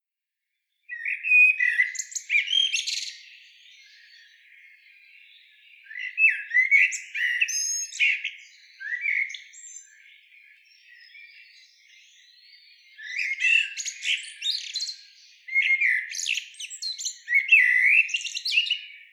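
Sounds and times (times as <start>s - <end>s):
common blackbird singing: 0.9s - 19.1s.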